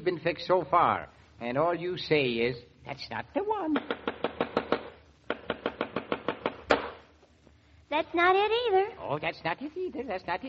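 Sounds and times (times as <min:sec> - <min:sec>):
speech: 0:00.0 - 0:04.5, 0:07.9 - 0:10.4
hammer pounding nails into moldings: 0:03.8 - 0:07.0.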